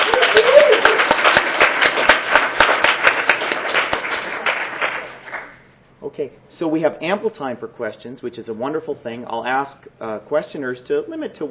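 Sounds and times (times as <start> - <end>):
audience round of applause: 0.0 - 5.6
speech: 6.2 - 11.5.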